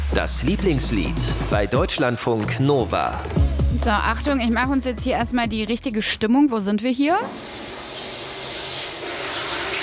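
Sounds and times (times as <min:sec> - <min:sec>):
speech: 0:00.2 - 0:07.6
shower running while someone soaps up: 0:07.2 - 0:09.8.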